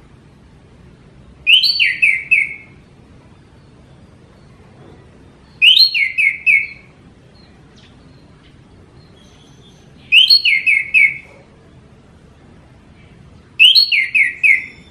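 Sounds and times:
orange-headed thrush singing descending whistled phrases: 0:01.4 - 0:02.8, 0:05.4 - 0:07.5, 0:09.0 - 0:11.3, 0:13.6 - 0:14.8.

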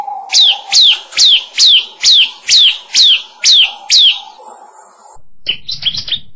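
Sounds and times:
Bar-winged Prinia chirping: 0:00.0 - 0:06.1.

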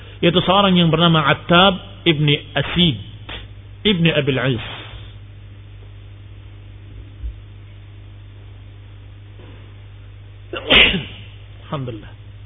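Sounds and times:
steady low electrical hum: 0:00.0 - 0:12.4
speech: 0:00.2 - 0:03.1, 0:03.8 - 0:04.7
person sneezing: 0:10.5 - 0:11.4.

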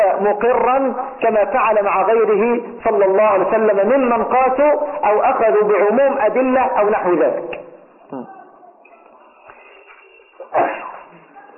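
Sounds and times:
speech: 0:00.2 - 0:08.3
sneeze during a religious lesson: 0:10.4 - 0:11.3.

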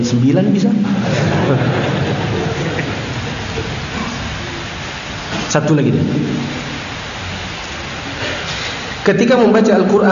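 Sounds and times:
speech: 0:00.0 - 0:01.9, 0:05.5 - 0:06.7, 0:09.0 - 0:10.0
laughter: 0:00.8 - 0:04.0
heavy rain: 0:00.8 - 0:10.0.

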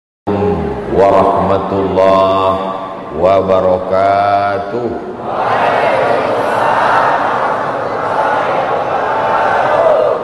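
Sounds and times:
speech: 0:01.0 - 0:05.9
large audience answering an Islamic greeting in unison: 0:05.2 - 0:10.2.

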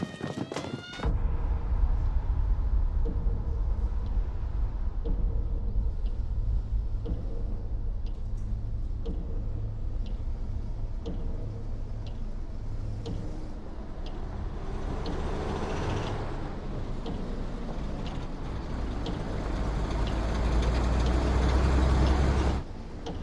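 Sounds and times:
cargo truck carrying soldiers driving up to gates: 0:00.1 - 0:23.2
faint clicks and rattles: 0:06.0 - 0:23.2.

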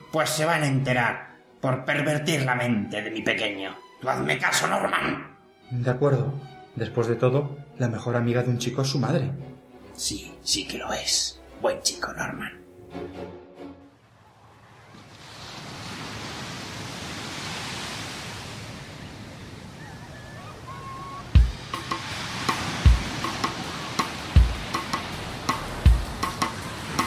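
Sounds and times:
speech: 0:00.1 - 0:13.4
ocean waves breaking on shore: 0:13.6 - 0:27.0
hissing wash of surf: 0:13.9 - 0:27.0.

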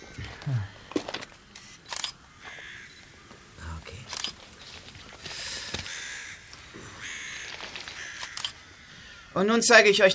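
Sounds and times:
speech: 0:00.5 - 0:00.8, 0:09.4 - 0:10.1
camera shutter clicks: 0:01.6 - 0:02.2, 0:04.1 - 0:04.4, 0:07.9 - 0:08.6.

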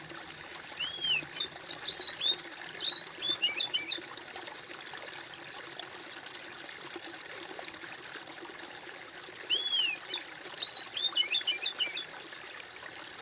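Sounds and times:
bird song: 0:00.8 - 0:04.0, 0:09.5 - 0:12.1.

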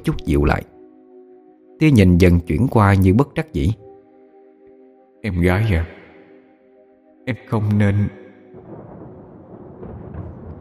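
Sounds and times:
speech: 0:00.0 - 0:00.7, 0:01.8 - 0:03.8, 0:05.2 - 0:06.0, 0:07.2 - 0:08.2
thunder rumbling: 0:08.5 - 0:10.5.

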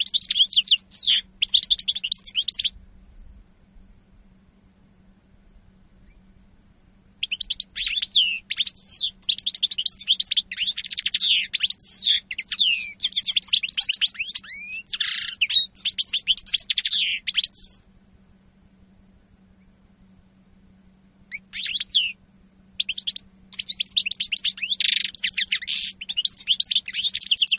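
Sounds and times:
European goldfinch song: 0:00.0 - 0:02.7, 0:07.2 - 0:17.8, 0:21.3 - 0:22.2, 0:22.8 - 0:27.5
faint steady hum: 0:00.0 - 0:26.2.

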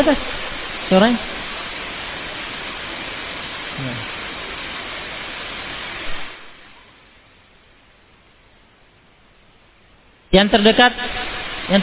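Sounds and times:
speech: 0:00.0 - 0:01.3, 0:10.3 - 0:11.8
heavy rain: 0:00.0 - 0:07.9, 0:10.4 - 0:11.8.

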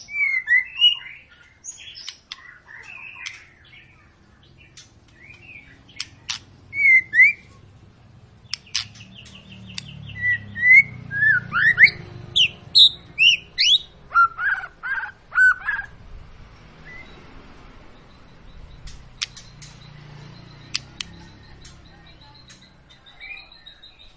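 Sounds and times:
White-rumped shama whistling song: 0:00.0 - 0:07.6, 0:08.4 - 0:16.0, 0:16.8 - 0:17.3, 0:18.0 - 0:24.1
crisp clicks: 0:02.0 - 0:02.5, 0:04.8 - 0:06.5, 0:08.5 - 0:09.9, 0:18.8 - 0:19.8.

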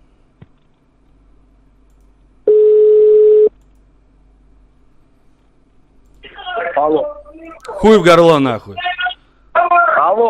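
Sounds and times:
telephone tone beep: 0:02.5 - 0:03.5
speech: 0:06.8 - 0:07.2, 0:07.8 - 0:08.8.

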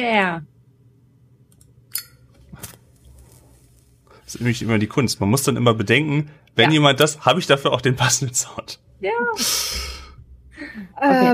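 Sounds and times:
speech: 0:00.0 - 0:00.5, 0:04.3 - 0:10.0, 0:10.6 - 0:11.3
low steady hum: 0:00.0 - 0:11.3
lighter flame flare: 0:02.4 - 0:04.7.

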